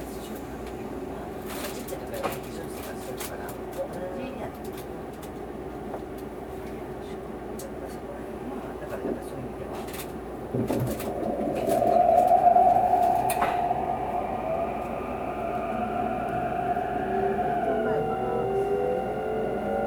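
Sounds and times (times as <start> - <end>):
limited express train to Nara departing: 9.0 - 19.8.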